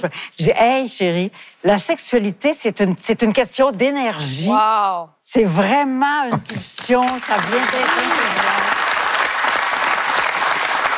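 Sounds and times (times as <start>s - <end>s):
speech: 0.0s - 8.7s
audience applause: 6.8s - 10.9s.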